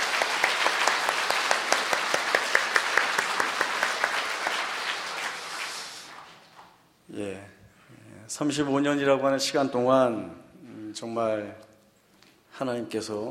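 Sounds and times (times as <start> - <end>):
audience applause: 0.0 - 6.6
speech: 8.4 - 10.4, 11.0 - 11.7, 12.6 - 13.2.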